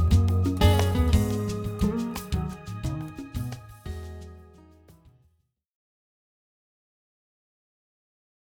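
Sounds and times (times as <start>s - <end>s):
holiday guitar: 0.0s - 5.2s.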